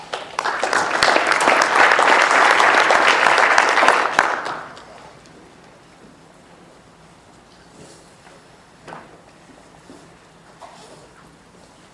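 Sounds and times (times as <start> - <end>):
audience clapping to welcome a mining-safety research speaker: 0.0 - 5.0.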